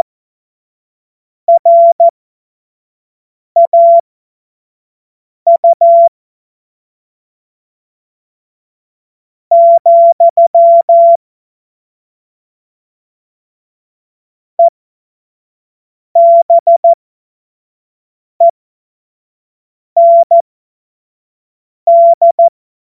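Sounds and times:
morse code beeps: 0:01.5 - 0:02.1, 0:03.6 - 0:04.0, 0:05.5 - 0:06.1, 0:09.5 - 0:11.2, 0:16.2 - 0:17.0, 0:20.0 - 0:20.4, 0:21.9 - 0:22.5.

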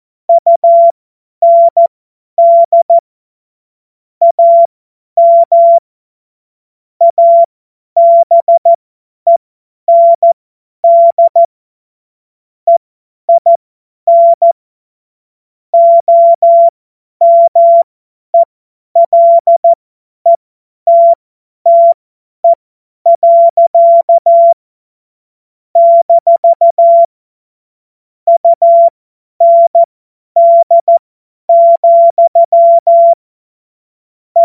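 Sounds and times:
CW Morse code beeps: 0:00.3 - 0:03.0, 0:04.2 - 0:05.8, 0:07.0 - 0:08.7, 0:09.3 - 0:11.5, 0:12.7 - 0:14.6, 0:15.8 - 0:24.6, 0:25.8 - 0:27.1, 0:28.3 - 0:33.2.

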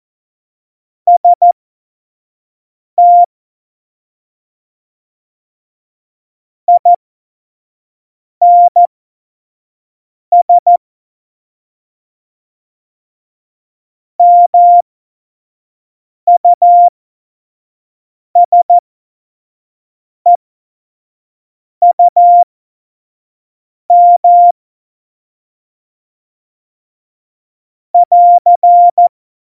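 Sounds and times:
CW Morse code beeps: 0:01.1 - 0:01.6, 0:03.0 - 0:03.3, 0:06.7 - 0:07.0, 0:08.4 - 0:08.9, 0:10.4 - 0:10.8, 0:14.2 - 0:14.8, 0:16.3 - 0:16.9, 0:18.4 - 0:18.8, 0:21.8 - 0:22.4, 0:23.9 - 0:24.6, 0:28.0 - 0:29.1.

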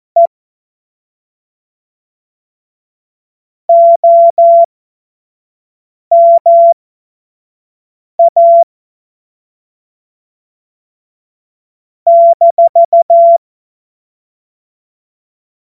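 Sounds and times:
morse code CW: 0:03.7 - 0:04.7, 0:06.1 - 0:06.8, 0:12.1 - 0:13.4.

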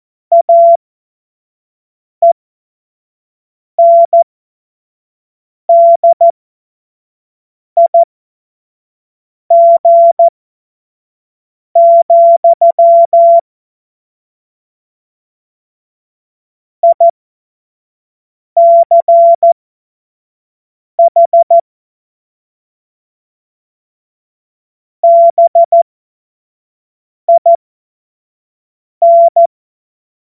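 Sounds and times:
CW Morse code beeps: 0:00.3 - 0:00.8, 0:03.8 - 0:04.2, 0:05.7 - 0:06.3, 0:07.8 - 0:08.1, 0:09.5 - 0:10.3, 0:11.8 - 0:13.4, 0:16.8 - 0:17.1, 0:18.6 - 0:19.6, 0:21.0 - 0:21.6, 0:25.0 - 0:25.8, 0:27.3 - 0:27.6, 0:29.0 - 0:29.5.

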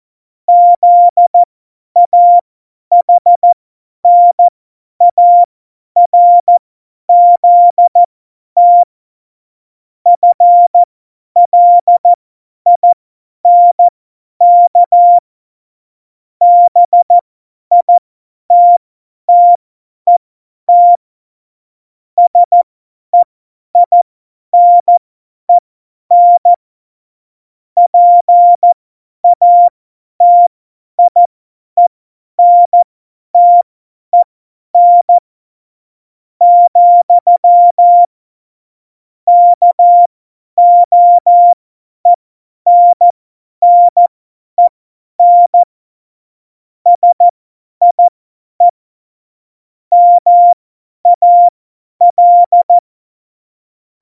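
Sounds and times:
CW Morse code beeps: 0:00.5 - 0:03.5, 0:04.1 - 0:04.5, 0:05.1 - 0:08.0, 0:08.6 - 0:08.9, 0:10.2 - 0:15.2, 0:16.4 - 0:17.9, 0:18.5 - 0:21.0, 0:22.2 - 0:22.6, 0:23.8 - 0:24.0, 0:24.6 - 0:25.0, 0:26.1 - 0:26.6, 0:27.9 - 0:35.2, 0:36.4 - 0:38.1, 0:39.3 - 0:45.7, 0:46.9 - 0:48.7, 0:49.9 - 0:52.8.

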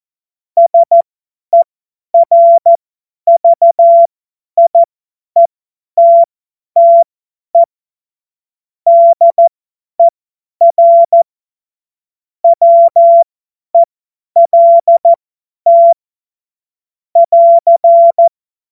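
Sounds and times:
CW Morse code beeps: 0:00.6 - 0:01.6, 0:02.2 - 0:07.0, 0:08.9 - 0:11.2, 0:12.4 - 0:16.0, 0:17.2 - 0:18.3.

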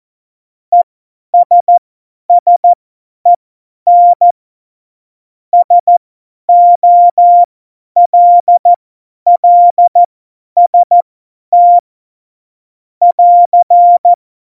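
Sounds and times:
CW Morse code beeps: 0:01.4 - 0:01.8, 0:02.4 - 0:02.8, 0:03.9 - 0:04.3, 0:05.6 - 0:08.7, 0:09.3 - 0:11.0, 0:11.6 - 0:11.8, 0:13.0 - 0:14.2.

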